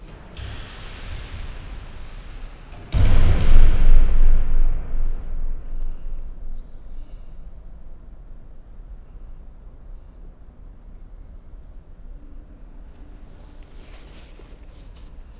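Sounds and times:
side door slamming: 0:00.0 - 0:08.4.

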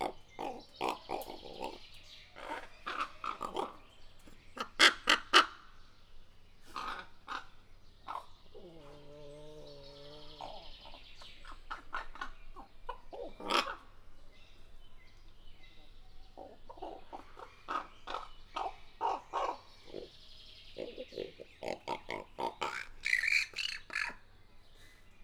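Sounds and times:
raven calling in a zoo: 0:00.0 - 0:03.9, 0:06.7 - 0:14.0, 0:16.3 - 0:24.3.

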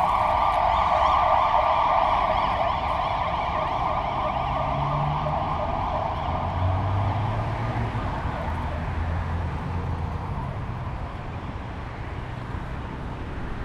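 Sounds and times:
ambulance siren: 0:00.0 - 0:12.7.

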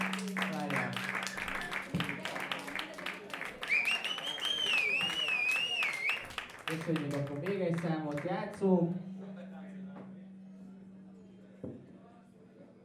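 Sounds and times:
low hum: 0:00.0 - 0:01.7, 0:07.0 - 0:12.8
audience applause: 0:00.0 - 0:08.3
wavering high whistle-like tone: 0:03.6 - 0:06.3
speech: 0:06.8 - 0:09.1.

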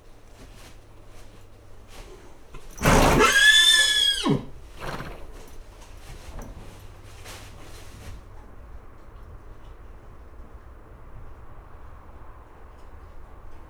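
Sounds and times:
nervous agitated horse whinnying in a stable on a farmyard: 0:02.6 - 0:05.5.

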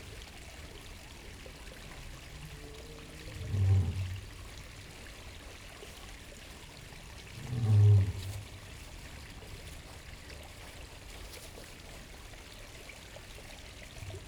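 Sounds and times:
stream in a zoo: 0:00.0 - 0:14.2
lion roaring in a zoo: 0:07.4 - 0:08.5.

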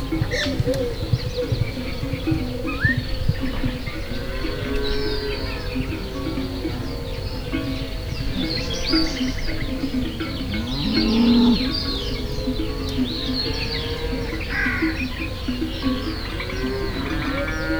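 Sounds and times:
wild horse galloping on the puszta in Hortobágy National Park: 0:00.0 - 0:17.7.

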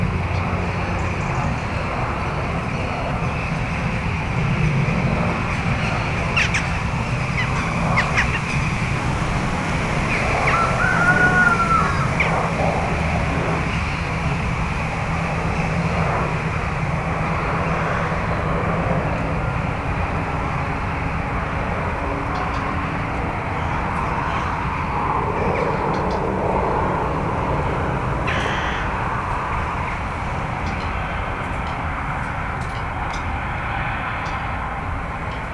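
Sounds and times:
starlings chased by crows in Hortobágy National Park: 0:00.0 - 0:33.4
strong motorized engine noise in Hortobágy National Park: 0:00.0 - 0:35.0
crows chasing starlings in Hortobágy National Park: 0:05.0 - 0:15.7, 0:22.2 - 0:35.4.

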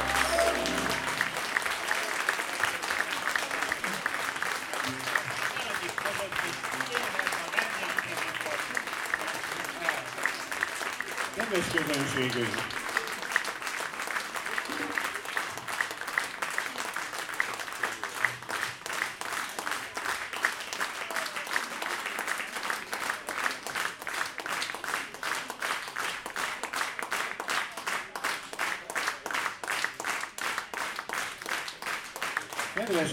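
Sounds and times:
audience applause: 0:00.0 - 0:33.1
speech: 0:11.5 - 0:12.8.

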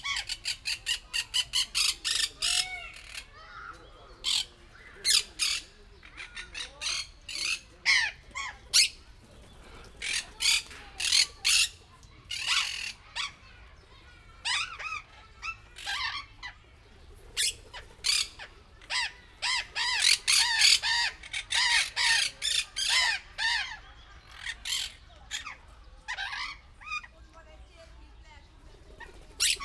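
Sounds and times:
burrowing parrots calling: 0:00.0 - 0:16.6, 0:17.4 - 0:27.1, 0:29.0 - 0:29.6
burrowing parrots flapping wings: 0:08.2 - 0:11.8, 0:17.0 - 0:21.8, 0:28.6 - 0:29.6.

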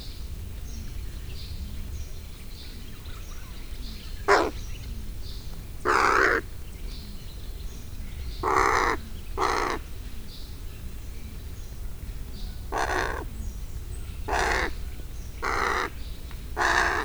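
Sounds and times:
hooded crow cawing while walking on the ground in a zoo: 0:04.3 - 0:04.6, 0:05.8 - 0:06.4, 0:08.4 - 0:09.9, 0:12.7 - 0:13.3, 0:14.3 - 0:14.8, 0:15.4 - 0:16.0, 0:16.6 - 0:17.0.

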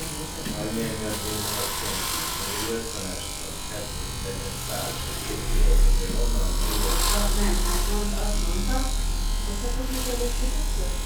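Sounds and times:
hair clipper: 0:00.0 - 0:11.0.

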